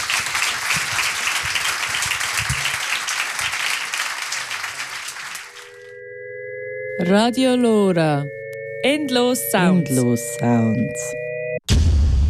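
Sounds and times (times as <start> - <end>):
audience applause: 0.0 - 5.9
speech: 7.0 - 11.2.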